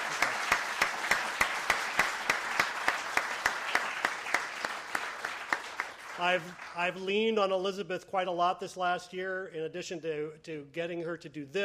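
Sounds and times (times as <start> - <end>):
audience round of applause: 0.0 - 7.1
speech: 6.2 - 11.6.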